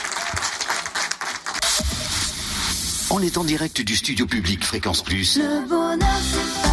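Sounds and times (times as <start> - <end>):
studio audience applause: 0.0 - 2.2
speech: 3.1 - 6.6.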